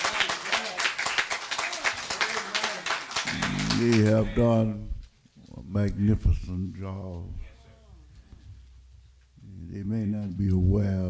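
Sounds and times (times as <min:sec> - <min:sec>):
audience clapping for the choir: 0:00.0 - 0:04.5
speech: 0:03.8 - 0:04.9, 0:05.7 - 0:07.4, 0:09.8 - 0:11.0.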